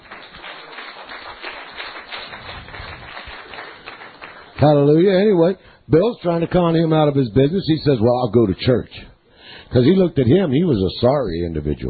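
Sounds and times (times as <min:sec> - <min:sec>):
audience applauding and cheering: 0:00.0 - 0:04.7
speech: 0:04.6 - 0:09.1, 0:09.7 - 0:11.8.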